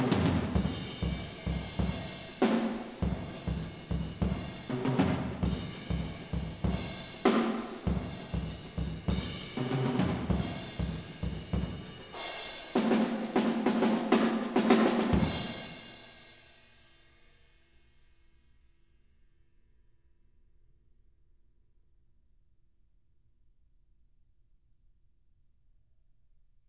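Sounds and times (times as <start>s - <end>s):
drum in a live studio: 0.0s - 16.1s.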